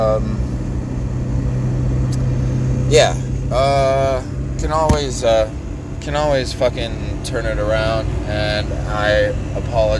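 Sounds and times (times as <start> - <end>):
car engine drone: 0.0 - 9.9
speech: 0.1 - 0.6, 2.9 - 9.9.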